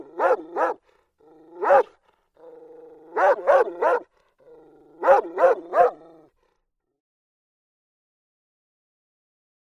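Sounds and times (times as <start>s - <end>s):
dog barking: 0.0s - 0.9s, 1.5s - 6.3s.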